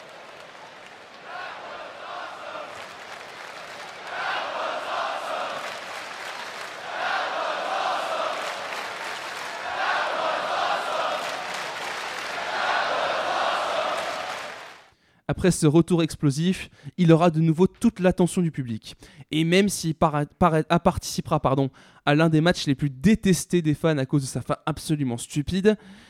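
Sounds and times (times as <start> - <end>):
wrestling crowd of about 20,000 fans chanting: 0.0 - 14.9
speech: 15.3 - 26.0.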